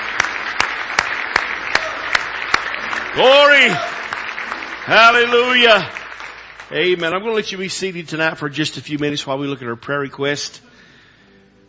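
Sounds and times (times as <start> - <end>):
crowd clapping: 0.0 - 8.3
speech: 3.2 - 4.0, 4.8 - 6.0, 6.7 - 10.7.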